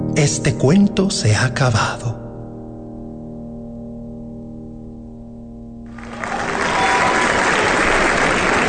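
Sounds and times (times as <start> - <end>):
speech: 0.2 - 2.2
applause: 5.9 - 8.6.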